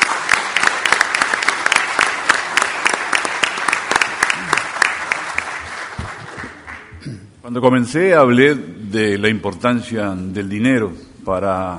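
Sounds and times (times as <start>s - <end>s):
audience applause: 0.0s - 7.0s
speech: 7.5s - 11.7s.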